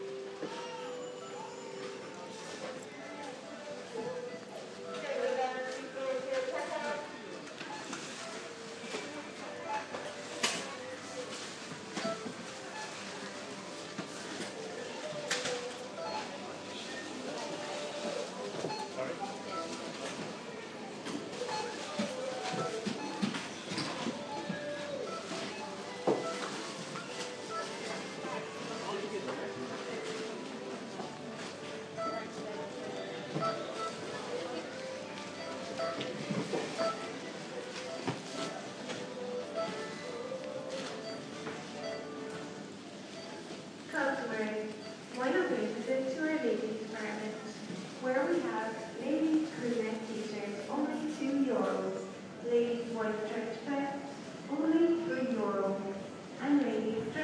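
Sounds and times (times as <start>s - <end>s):
shopping centre soundscape: 0.0s - 57.2s.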